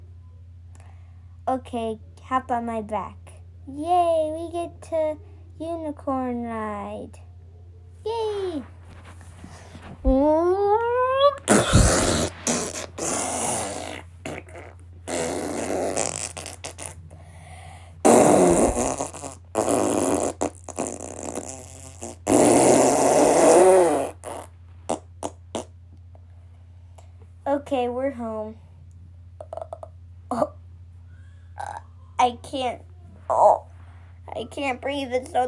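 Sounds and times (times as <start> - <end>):
speech: 1.5 - 7.3, 8.0 - 8.7, 10.1 - 10.9, 32.2 - 33.6, 34.4 - 35.4
loud prolonged diarrhea farts: 11.0 - 17.0, 18.0 - 25.7.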